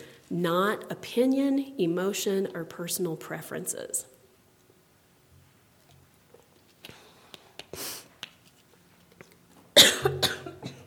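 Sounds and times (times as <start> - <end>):
speech: 0.3 - 4.1
harsh coughing after a drink went down the wrong way: 9.8 - 10.8.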